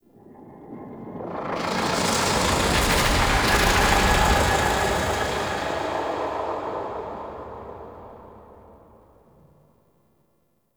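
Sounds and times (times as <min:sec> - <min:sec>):
pulsating whoosh: 0:01.0 - 0:09.5.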